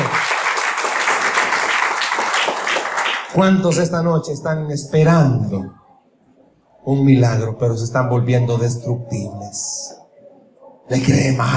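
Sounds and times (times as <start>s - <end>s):
audience applause: 0.0s - 3.4s
speech: 3.4s - 5.8s, 6.8s - 10.0s, 10.9s - 11.5s.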